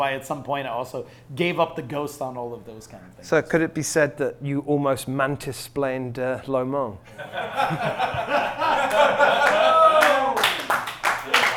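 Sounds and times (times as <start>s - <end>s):
speech: 0.0s - 9.8s
people chuckling: 7.1s - 10.0s
slow clap: 8.8s - 11.5s.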